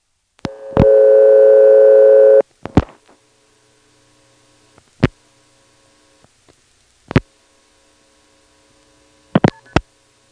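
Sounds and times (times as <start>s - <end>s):
steady telephone tone after dialing 116: 0.5s - 2.4s.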